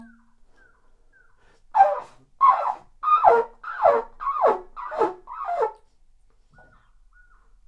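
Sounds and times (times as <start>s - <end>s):
bird down-slurring calls: 1.8s - 5.7s.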